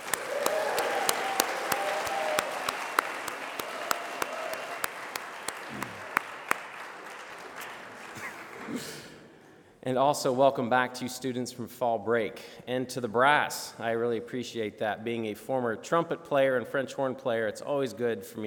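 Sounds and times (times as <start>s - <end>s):
audience cheering: 0.0s - 7.8s
applause: 0.0s - 9.2s
speech: 9.8s - 18.4s.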